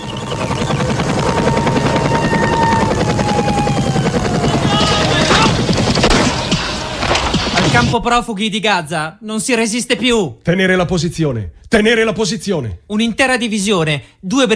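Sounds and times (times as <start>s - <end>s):
helicopter rotor chop and whining engine: 0.0s - 7.9s
machine gun fire: 4.4s - 7.9s
speech: 7.8s - 14.5s.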